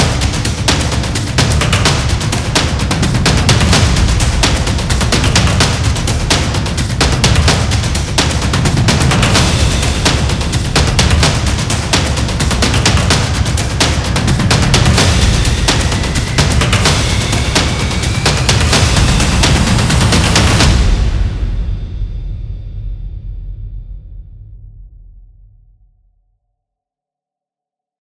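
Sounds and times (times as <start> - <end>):
epic intense drum beats: 0.0 - 25.0.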